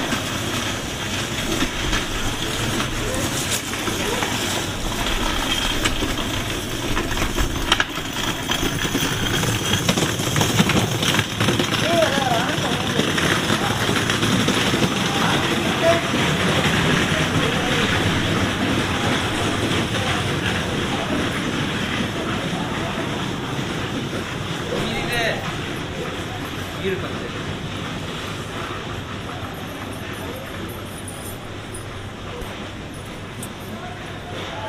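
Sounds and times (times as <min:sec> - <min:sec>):
Japanese night train running: 0:00.0 - 0:34.6.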